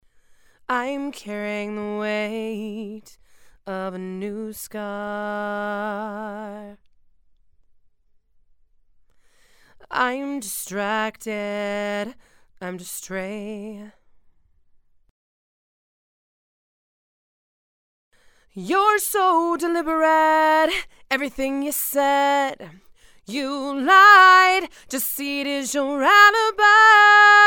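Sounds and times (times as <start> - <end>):
female vocals: 0.7 - 6.8, 9.8 - 14.0, 18.5 - 27.4.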